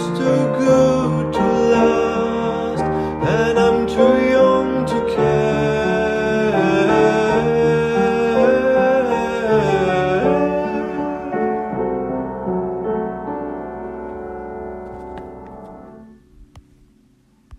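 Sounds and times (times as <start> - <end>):
soprano voices: 0.0 - 13.4.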